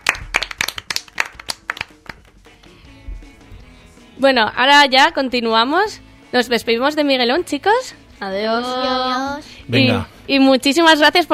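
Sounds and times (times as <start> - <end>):
children clapping: 0.0 - 2.4
speech: 4.2 - 11.3.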